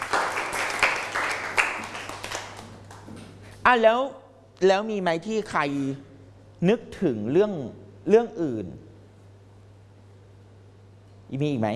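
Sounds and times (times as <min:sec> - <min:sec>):
students clapping for a classmate: 0:00.0 - 0:03.1
speech: 0:03.7 - 0:08.9, 0:11.3 - 0:11.7.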